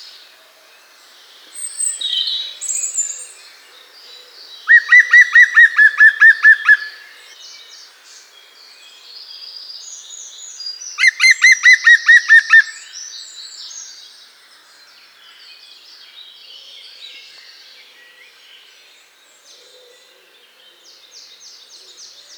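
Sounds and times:
green woodpecker: 4.7s - 7.2s, 11.0s - 12.8s.

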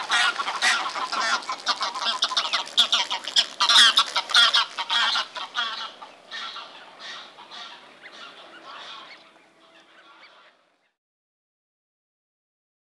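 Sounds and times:
Greylag goose: 0.0s - 10.7s.

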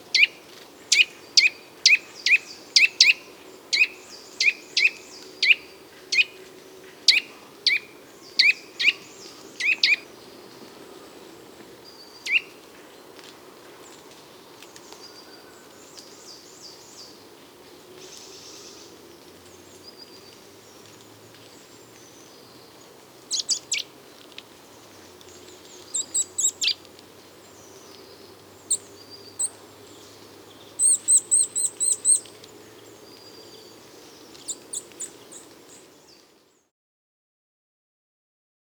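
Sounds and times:
nuthatch calling: 0.9s - 5.6s, 7.1s - 10.0s, 12.3s - 12.5s, 23.3s - 23.9s, 25.8s - 26.8s, 28.6s - 29.6s, 30.8s - 32.3s.

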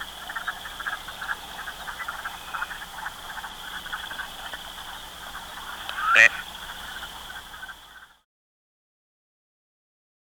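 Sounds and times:
Gadwall: 0.0s - 8.1s.

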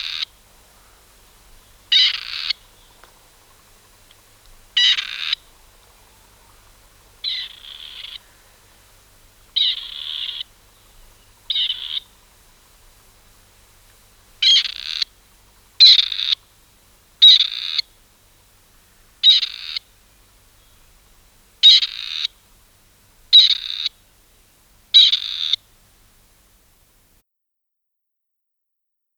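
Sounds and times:
Grey Partridge calling: 0.0s - 8.5s, 9.5s - 13.2s, 14.4s - 16.5s, 17.2s - 17.9s, 19.2s - 19.9s, 21.6s - 22.4s, 23.3s - 24.0s, 24.9s - 25.7s.

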